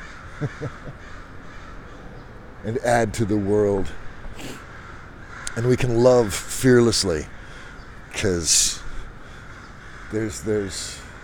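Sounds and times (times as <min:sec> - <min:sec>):
crow cawing: 0:00.0 - 0:02.2, 0:03.9 - 0:06.2, 0:07.0 - 0:11.2
steady low hiss: 0:00.0 - 0:11.2
speech: 0:00.4 - 0:01.3, 0:02.6 - 0:04.6, 0:05.6 - 0:07.4, 0:08.2 - 0:08.8, 0:10.1 - 0:11.0.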